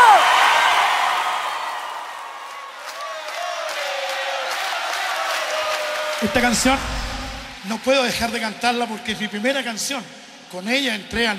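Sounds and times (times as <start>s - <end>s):
audience applause: 0.0s - 7.6s
speech: 6.2s - 11.3s.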